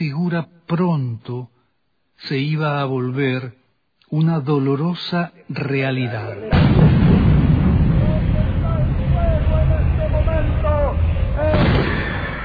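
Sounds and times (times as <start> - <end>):
speech: 0.0 - 1.6, 2.2 - 6.9
machine-gun fire: 6.5 - 9.5, 11.4 - 12.4
falling bombs exploding: 6.5 - 12.4.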